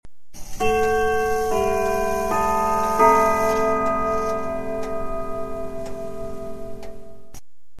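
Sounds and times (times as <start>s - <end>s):
clock chime at the three-quarter hour: 0.6s - 7.4s.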